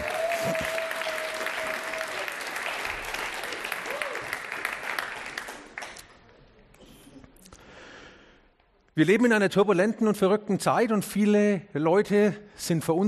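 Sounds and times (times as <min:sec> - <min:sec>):
audience applause: 0:00.0 - 0:06.2
speech: 0:09.0 - 0:13.0.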